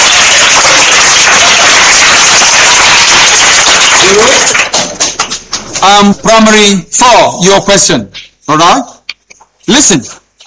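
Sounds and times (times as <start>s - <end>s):
crowd applause: 0.0s - 5.8s
speech: 5.8s - 9.0s, 9.7s - 10.2s.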